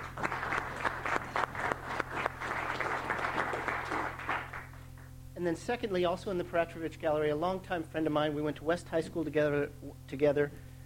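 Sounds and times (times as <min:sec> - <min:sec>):
audience clapping: 0:00.0 - 0:05.1
faint low hum: 0:00.0 - 0:10.8
speech: 0:05.4 - 0:10.7.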